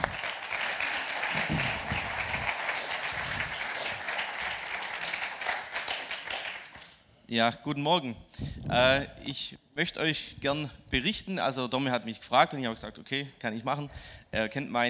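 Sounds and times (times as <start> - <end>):
audience applause: 0.0 - 6.9
speech: 7.3 - 14.8.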